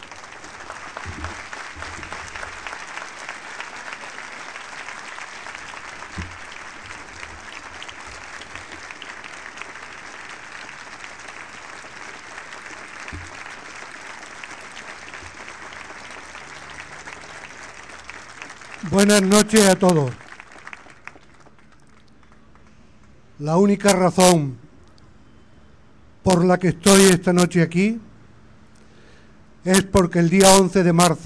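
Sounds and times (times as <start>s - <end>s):
warm applause from audience: 0.0s - 22.7s
speech: 18.9s - 20.2s, 23.4s - 24.6s, 26.3s - 28.1s, 29.6s - 31.2s.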